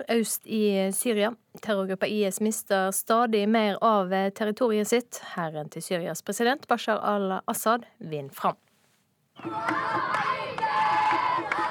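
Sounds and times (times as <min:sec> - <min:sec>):
speech: 0:00.0 - 0:08.6, 0:09.4 - 0:10.2
children cheering: 0:09.4 - 0:11.6.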